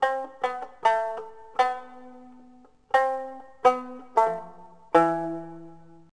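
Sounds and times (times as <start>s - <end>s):
shamisen: 0.0s - 6.1s.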